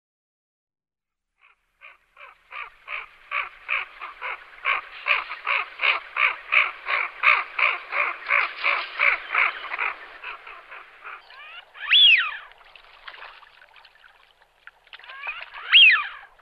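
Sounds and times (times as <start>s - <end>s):
Eurasian wigeons whistling together: 2.2s - 12.5s, 15.1s - 16.4s.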